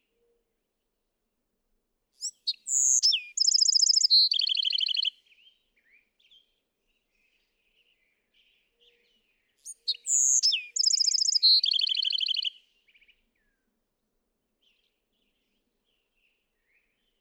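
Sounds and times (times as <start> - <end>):
Bewick's wren song with whistle and descending buzzy trill: 2.8 - 5.0, 10.2 - 12.4.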